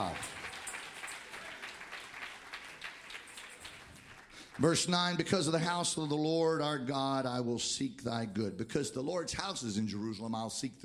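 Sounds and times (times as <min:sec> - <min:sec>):
audience clapping hands: 0:00.0 - 0:05.4
speech: 0:04.6 - 0:10.8.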